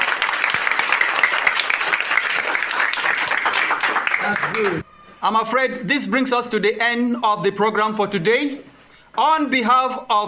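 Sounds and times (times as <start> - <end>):
crowd applauding: 0.0 - 4.8
speech: 4.3 - 10.2.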